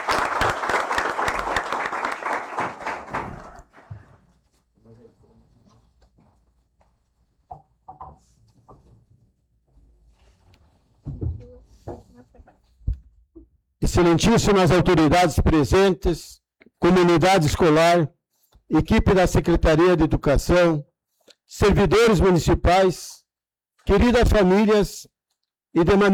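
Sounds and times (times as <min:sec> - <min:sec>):
round of applause: 0:00.0 - 0:04.0
speech: 0:14.0 - 0:20.9, 0:21.5 - 0:23.2, 0:23.8 - 0:25.1, 0:25.8 - 0:26.1.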